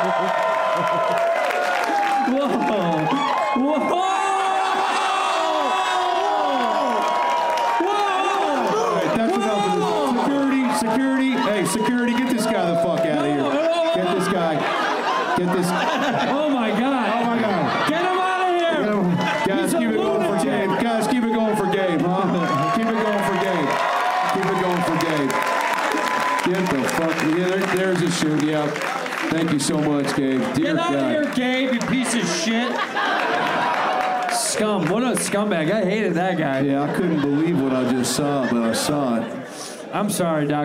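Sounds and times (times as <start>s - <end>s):
laughter: 0.0s - 6.9s, 8.0s - 25.4s, 29.4s - 39.6s
audience cheering and applauding: 0.0s - 37.7s
speech: 29.6s - 32.9s, 34.7s - 40.6s.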